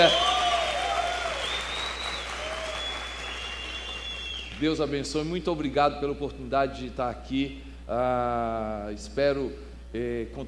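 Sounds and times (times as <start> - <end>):
audience round of applause: 0.0 - 4.5
speech: 4.6 - 10.4.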